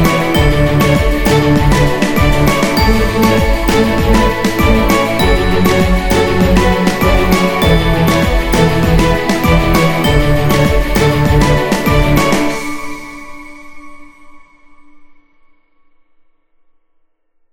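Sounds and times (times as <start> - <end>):
happy corporate music: 0.0 - 12.9.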